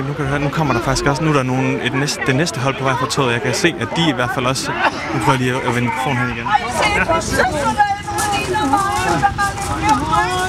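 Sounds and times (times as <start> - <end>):
extras moaning and groaning in emergency exercise: 0.0 - 10.4
speech: 0.0 - 10.4
low rumble: 0.1 - 2.0.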